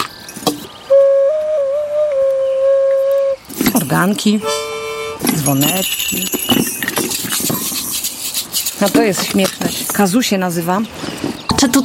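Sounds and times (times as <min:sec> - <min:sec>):
ocarina being played: 0:00.9 - 0:06.3
speech: 0:03.9 - 0:04.6, 0:05.2 - 0:06.7, 0:08.8 - 0:11.8.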